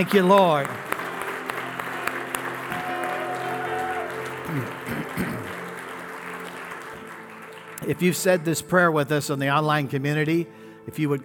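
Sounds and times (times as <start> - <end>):
speech: 0.0 - 0.8, 4.5 - 5.6, 7.8 - 11.2
audience clapping hands: 0.0 - 8.8.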